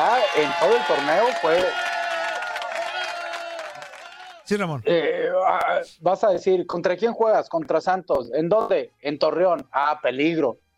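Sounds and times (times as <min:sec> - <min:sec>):
speech: 0:00.0 - 0:01.9, 0:04.5 - 0:10.6
applause sound effect: 0:00.0 - 0:04.8.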